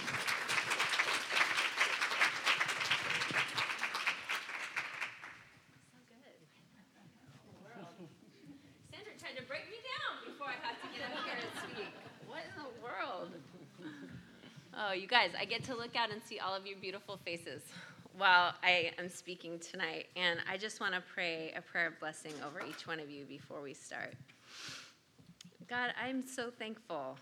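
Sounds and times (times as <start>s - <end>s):
audience applause at a Christian women's retreat: 0.0s - 5.6s
laughter: 10.3s - 14.6s
speech: 15.0s - 24.6s, 25.7s - 27.1s.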